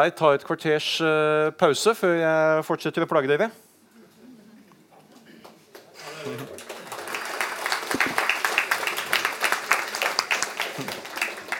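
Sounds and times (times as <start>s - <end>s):
speech: 0.0s - 3.7s
audience applause: 5.8s - 11.5s.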